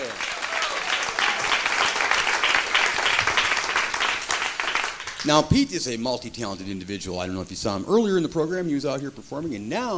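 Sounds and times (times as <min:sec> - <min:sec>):
audience applause: 0:00.0 - 0:05.4
speech: 0:05.2 - 0:09.9.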